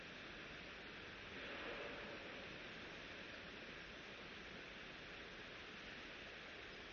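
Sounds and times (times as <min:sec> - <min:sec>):
riverside ambience: 0:00.1 - 0:06.8.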